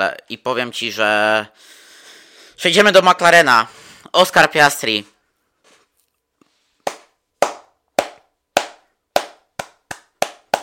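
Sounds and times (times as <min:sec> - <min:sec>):
speech: 0:00.0 - 0:01.8, 0:02.6 - 0:05.1
hands clapping: 0:06.8 - 0:10.6.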